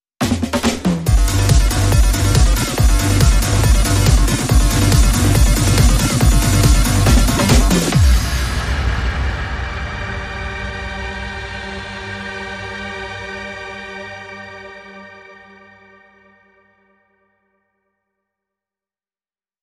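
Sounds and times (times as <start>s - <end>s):
techno dub bumper: 0.2s - 11.0s.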